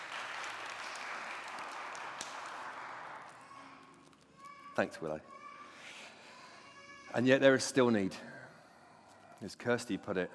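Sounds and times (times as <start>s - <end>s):
audience clapping: 0.0s - 3.4s
speech: 4.8s - 5.4s, 7.1s - 8.3s, 9.4s - 10.3s.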